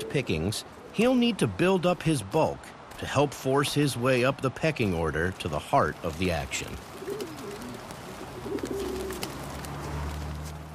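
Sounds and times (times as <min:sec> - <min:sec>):
pigeons cooing: 0:00.0 - 0:01.3, 0:06.6 - 0:10.4
speech: 0:00.0 - 0:06.9
faint hiss: 0:00.0 - 0:09.4.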